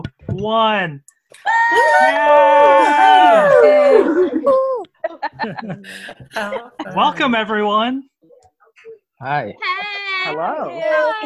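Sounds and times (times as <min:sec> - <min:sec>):
speech: 0:00.0 - 0:08.1, 0:09.2 - 0:11.2
group cheering and whooping over video call: 0:01.4 - 0:05.0
shouts and laughs: 0:01.4 - 0:05.6, 0:09.8 - 0:11.2.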